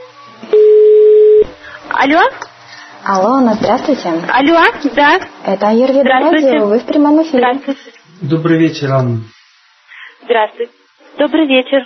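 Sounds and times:
telephone ringback tone: 0.0 - 1.5
speech: 2.0 - 2.4, 3.0 - 9.4, 10.3 - 11.8.

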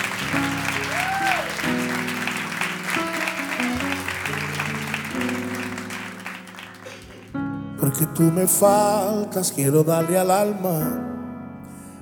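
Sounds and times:
audience applause: 0.0 - 7.4
speech: 7.9 - 11.1.

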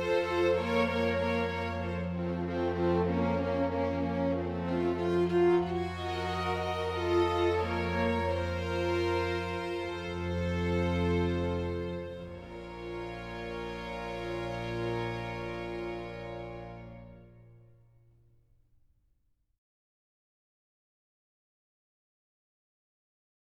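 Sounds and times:
sinfonia for strings and continuo: 0.0 - 17.8.

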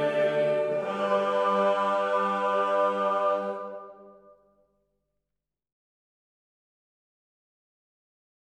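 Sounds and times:
choir singing: 0.0 - 4.4.

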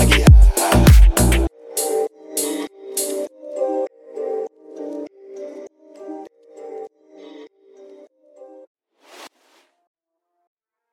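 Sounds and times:
remix music: 0.0 - 8.0.

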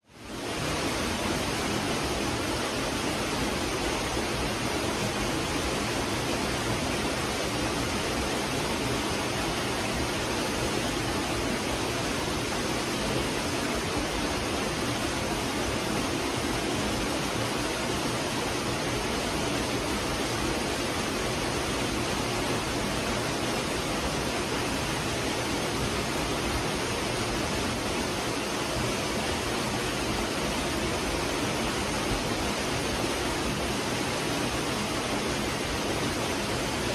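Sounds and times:
waterfall in a forest: 0.0 - 36.9.

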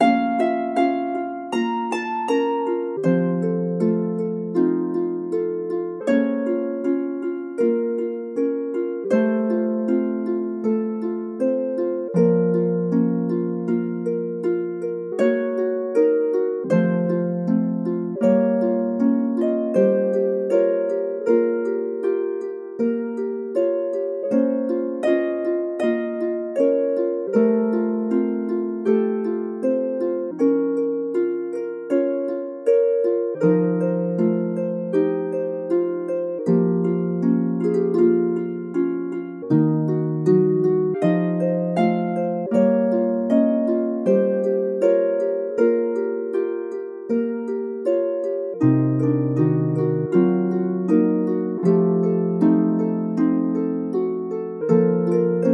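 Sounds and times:
harp playing: 0.0 - 55.5.

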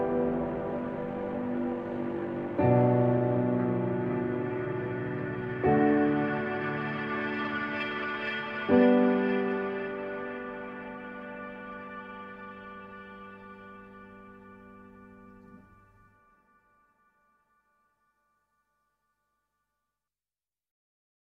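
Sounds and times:
emotional drama piano music: 0.0 - 16.8.

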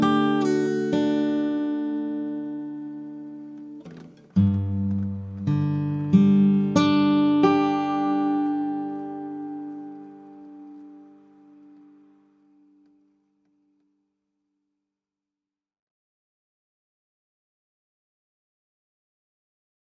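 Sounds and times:
acoustic cover song: 0.0 - 13.1.

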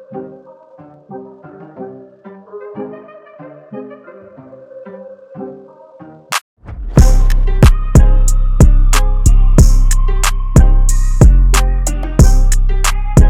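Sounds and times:
trap beat: 7.0 - 13.2.

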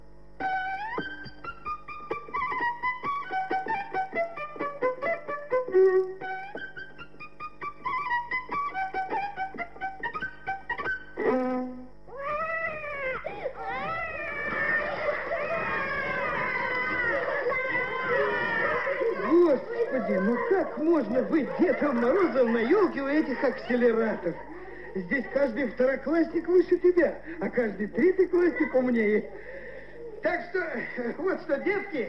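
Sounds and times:
child playing violin badly: 0.4 - 19.7
laughter: 12.7 - 32.0
speech: 23.0 - 29.6, 30.2 - 32.0.

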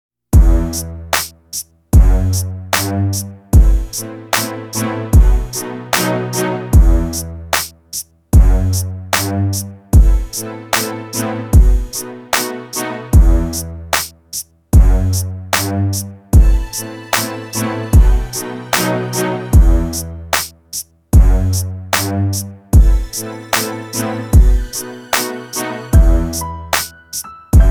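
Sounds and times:
classical hip-hop music: 0.4 - 27.6.

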